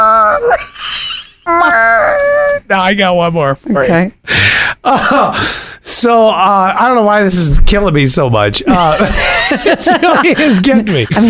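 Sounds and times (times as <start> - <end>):
speech: 1.5 - 2.0, 2.7 - 11.2
person imitating a groggy whimper: 1.5 - 2.7
laughter: 8.7 - 11.2.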